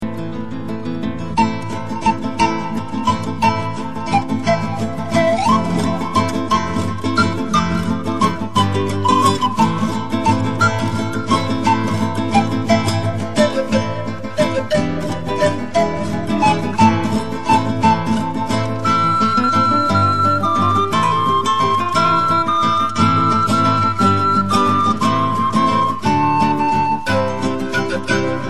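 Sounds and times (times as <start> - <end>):
piano: 0.1 - 28.4.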